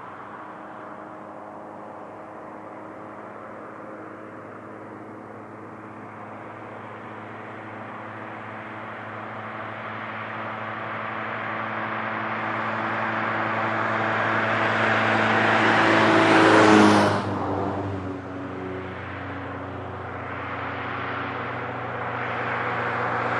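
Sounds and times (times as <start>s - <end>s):
car on a highway: 0.0s - 23.3s.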